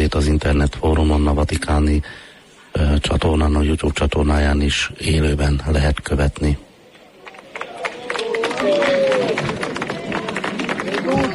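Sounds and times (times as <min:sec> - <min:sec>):
speech: 0:00.1 - 0:06.6, 0:08.6 - 0:09.6, 0:11.1 - 0:11.3
audience applause: 0:07.2 - 0:11.3.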